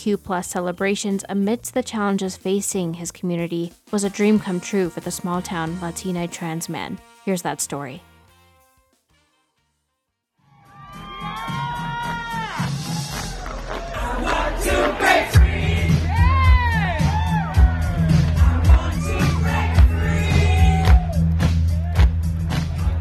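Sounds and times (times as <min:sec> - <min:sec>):
speech: 0:00.0 - 0:08.1
huge crowd cheering at Denver Pride festival: 0:10.6 - 0:22.9.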